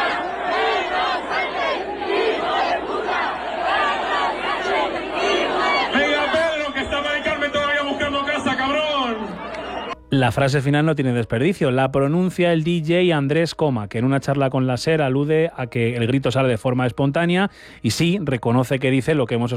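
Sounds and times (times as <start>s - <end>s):
thousands of young people singing at a festival: 0.0s - 10.0s
speech: 10.1s - 19.5s.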